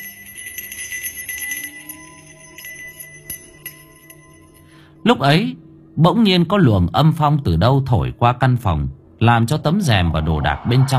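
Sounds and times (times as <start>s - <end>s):
silver bracelet jingling: 0.0s - 4.7s
speech: 5.0s - 10.9s.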